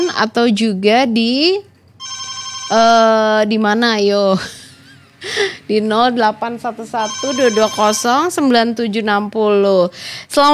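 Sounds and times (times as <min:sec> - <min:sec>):
speech: 0:00.2 - 0:01.7, 0:02.7 - 0:04.6, 0:05.2 - 0:10.5
electronic telephone ringtone on a radio call-in line: 0:02.0 - 0:03.3, 0:07.0 - 0:08.5.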